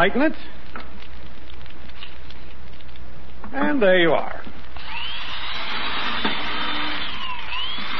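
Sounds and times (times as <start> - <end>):
speech: 0.0 - 0.6, 3.5 - 4.6
electric drill drilling through a wooden board: 4.8 - 7.9.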